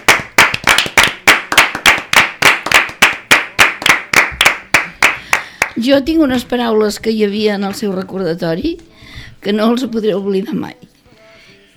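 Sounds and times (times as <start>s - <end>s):
people at table applauding: 0.0s - 5.8s
speech: 5.8s - 10.9s.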